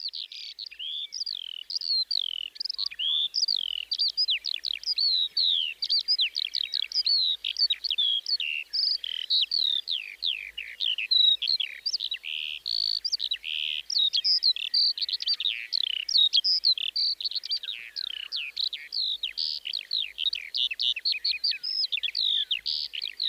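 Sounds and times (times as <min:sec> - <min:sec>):
Eurasian skylark song of chirps and whistles: 0:00.0 - 0:23.2.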